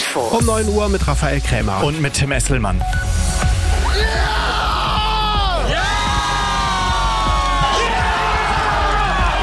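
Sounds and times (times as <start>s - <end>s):
speech: 0.2s - 3.1s
football fans cheering a World Cup win: 3.7s - 9.4s.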